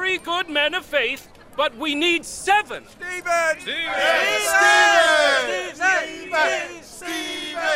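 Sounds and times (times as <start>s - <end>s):
speech: 0.1s - 7.7s
crowd shouting a name: 3.0s - 7.7s.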